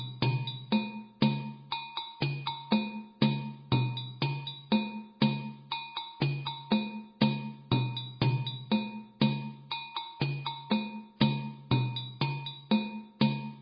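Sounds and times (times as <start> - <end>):
slow dunun drum playing: 0.0 - 13.5.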